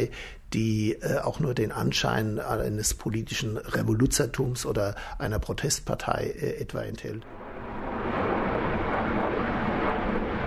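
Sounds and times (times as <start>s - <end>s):
speech: 0.0s - 7.4s
passenger airplane over Mainz on landing approach to Frankfurt am Main Airport: 7.2s - 10.4s.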